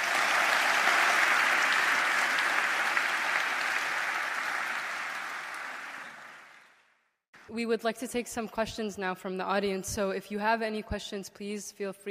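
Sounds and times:
audience applause: 0.0s - 6.8s
speech: 7.6s - 12.0s.

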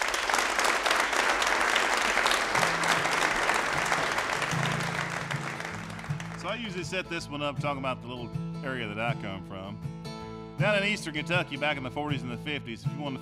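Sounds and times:
audience applause welcoming a guitarist to the Red Barn stage: 0.0s - 6.8s
speech: 6.6s - 9.9s, 10.6s - 13.2s.

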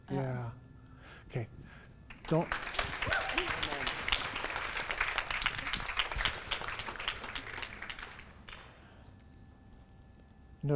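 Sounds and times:
speech: 1.3s - 1.5s, 2.3s - 2.7s
audience clapping: 2.1s - 8.8s.

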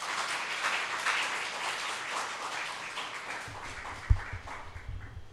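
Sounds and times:
audience applause: 0.0s - 5.2s.

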